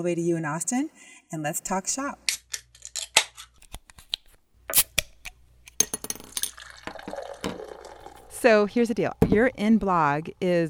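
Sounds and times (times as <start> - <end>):
speech: 0.0 - 2.4, 8.4 - 10.6
beer cracking open: 3.6 - 5.8, 6.5 - 8.4
beer pouring: 5.9 - 10.6.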